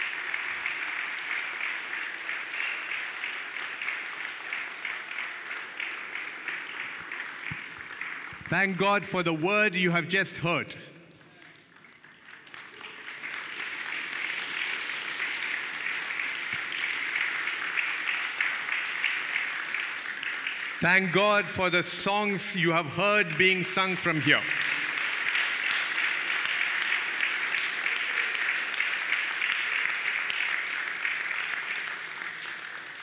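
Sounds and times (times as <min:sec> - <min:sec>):
audience clapping hands: 0:00.0 - 0:33.0
speech: 0:08.5 - 0:10.9, 0:20.8 - 0:24.7.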